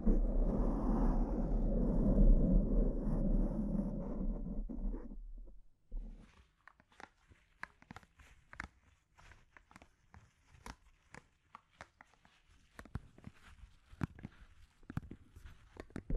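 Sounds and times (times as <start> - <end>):
dense steady rubbing rumble: 0.0 - 6.2.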